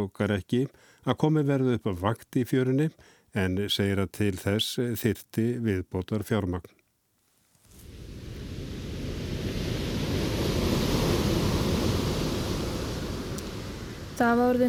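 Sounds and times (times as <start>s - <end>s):
speech: 0.0s - 6.8s, 14.2s - 14.6s
ocean waves on a beach: 7.7s - 14.6s.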